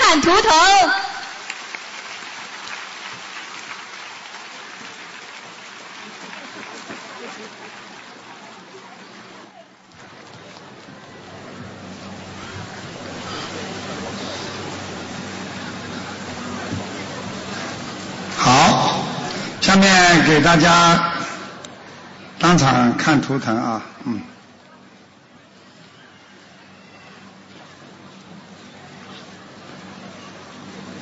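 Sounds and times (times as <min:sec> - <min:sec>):
speech: 0:00.1 - 0:01.1, 0:20.4 - 0:21.1, 0:22.4 - 0:24.3
audience applause: 0:01.1 - 0:21.8.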